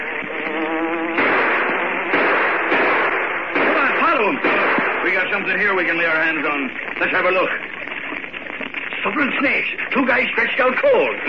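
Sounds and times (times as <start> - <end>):
distant motorboat engine: 0.0 - 7.0
speech: 4.3 - 7.8, 9.0 - 11.2.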